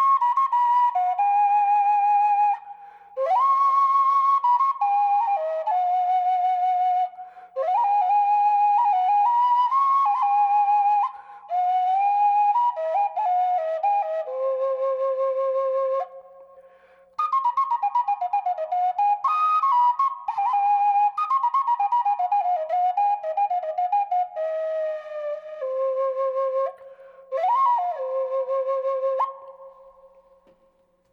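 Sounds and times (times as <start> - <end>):
flute melody in C minor with reverb: 0.0 - 30.4.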